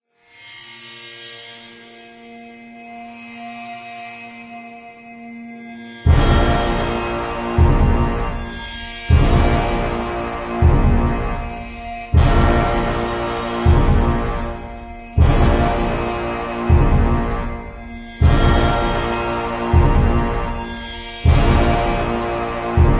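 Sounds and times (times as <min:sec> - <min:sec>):
battle boss intro music: 0:06.0 - 0:22.9.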